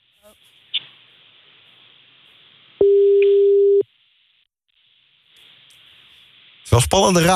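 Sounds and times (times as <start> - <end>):
faint hiss: 0.0 - 3.1, 3.8 - 7.3
telephone line tone while calling: 2.8 - 3.8
speech: 6.7 - 7.3.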